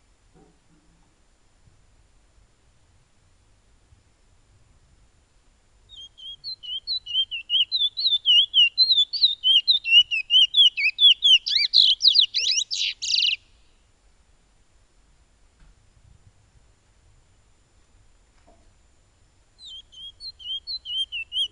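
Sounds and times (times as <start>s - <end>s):
piolet bird song: 5.9s - 13.8s, 19.6s - 21.5s.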